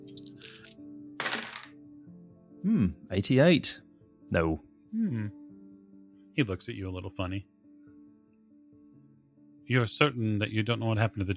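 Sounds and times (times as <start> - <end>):
dice clattering: 0.0 - 1.8
speech: 2.6 - 5.4, 6.4 - 7.5, 9.7 - 11.3.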